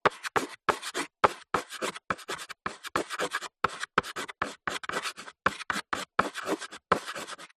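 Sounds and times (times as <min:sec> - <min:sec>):
chalk writing a short sentence on a blackboard: 0:00.0 - 0:07.5.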